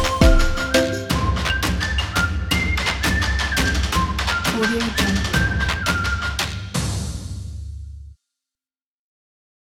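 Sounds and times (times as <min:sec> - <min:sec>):
tropical motivational music: 0:00.0 - 0:06.8.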